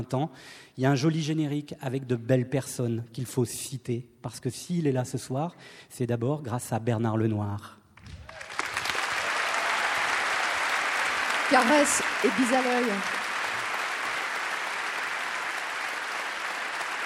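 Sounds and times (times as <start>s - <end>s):
speech: 0.0s - 7.8s, 11.5s - 13.2s
audience applause at orchestra concert: 8.1s - 17.0s.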